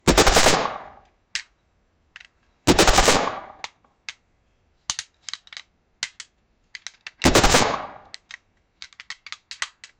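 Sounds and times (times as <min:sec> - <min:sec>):
automatic gunfire: 0:00.1 - 0:00.9, 0:02.7 - 0:03.6, 0:07.2 - 0:08.1.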